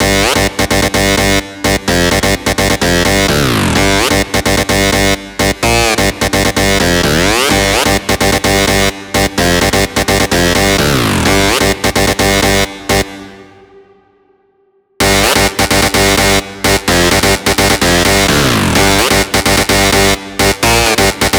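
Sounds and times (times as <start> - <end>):
synth drop lead in G at 128 BPM: 0.0 - 21.3.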